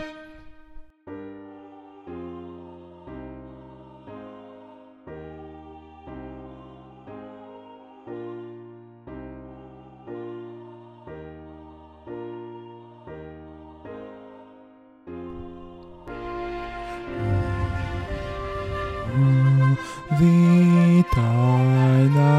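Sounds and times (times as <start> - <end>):
bass: 16.1 - 22.3.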